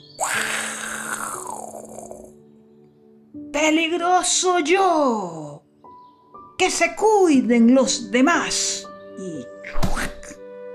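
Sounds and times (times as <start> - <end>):
lion roaring: 0.2 - 2.4
speech: 3.6 - 5.6, 6.6 - 9.3.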